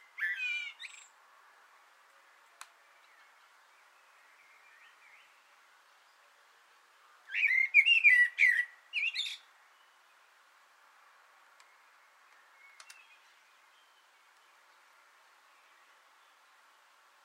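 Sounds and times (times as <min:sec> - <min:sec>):
common blackbird singing: 0:00.0 - 0:01.2, 0:02.8 - 0:06.2, 0:07.3 - 0:10.0, 0:11.6 - 0:14.8.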